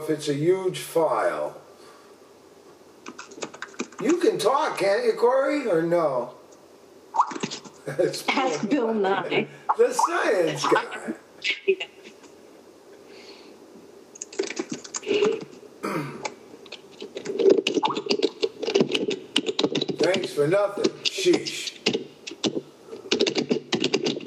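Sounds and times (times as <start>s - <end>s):
speech: 0.0s - 1.6s, 4.0s - 6.4s, 7.9s - 12.0s, 20.3s - 21.7s
typing on a computer keyboard: 3.0s - 4.1s, 14.2s - 15.5s, 16.7s - 20.3s, 21.8s - 24.2s.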